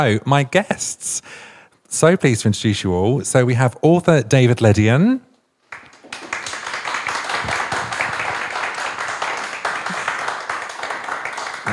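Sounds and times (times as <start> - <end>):
speech: 0.0 - 5.3
audience applause: 5.7 - 11.7.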